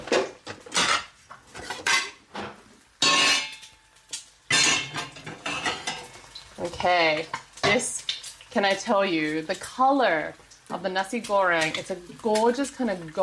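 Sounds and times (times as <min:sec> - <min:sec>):
ceramic plates clattering while nasi goreng is plated: 0:00.0 - 0:03.7, 0:04.5 - 0:06.2
speech: 0:06.6 - 0:13.2.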